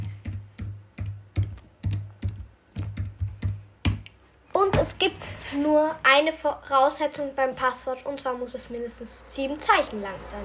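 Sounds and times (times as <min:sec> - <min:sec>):
computer keyboard typing: 0:00.0 - 0:04.2
speech: 0:04.6 - 0:10.4.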